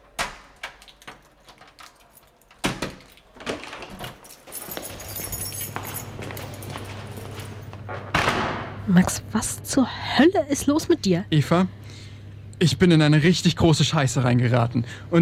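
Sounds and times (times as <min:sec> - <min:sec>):
door clunking open: 0:00.0 - 0:08.8
steady low hum: 0:00.0 - 0:15.2
keys jingling in a lock: 0:00.1 - 0:07.9
speech: 0:08.9 - 0:11.8, 0:12.6 - 0:15.2.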